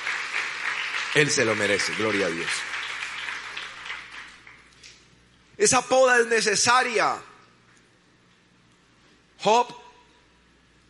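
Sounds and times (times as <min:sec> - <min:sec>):
audience applauding: 0:00.0 - 0:04.7
speech: 0:01.2 - 0:02.7, 0:05.6 - 0:07.3, 0:09.4 - 0:09.8.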